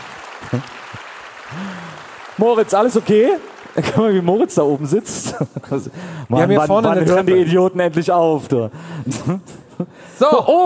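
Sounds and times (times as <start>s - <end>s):
audience applause: 0.0s - 5.3s
speech: 0.5s - 0.8s, 2.4s - 10.6s.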